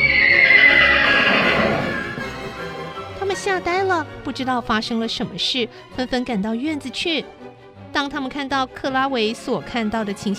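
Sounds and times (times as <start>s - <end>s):
horse neighing in terror: 0.0s - 2.6s
speech: 3.6s - 7.4s, 8.0s - 10.3s.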